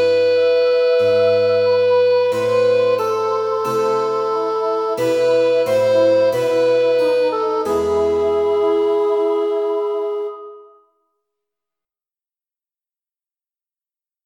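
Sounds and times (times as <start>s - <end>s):
choral lament without tenor: 0.0s - 10.6s.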